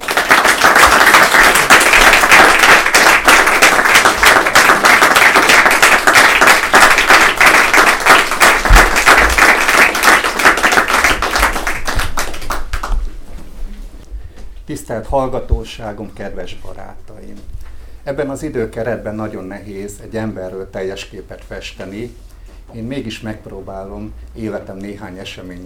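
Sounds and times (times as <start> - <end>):
audience applause welcoming a speaker: 0.0 - 13.0
speech: 15.0 - 25.6.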